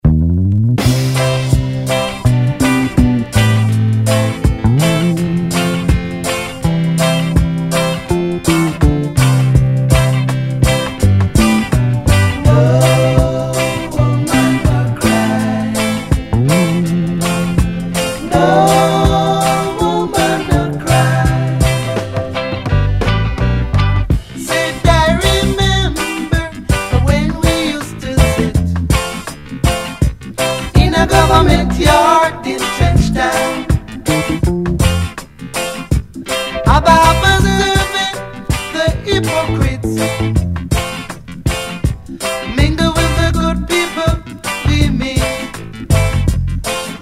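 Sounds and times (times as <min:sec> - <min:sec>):
disco reggae music: 0:00.0 - 0:47.0.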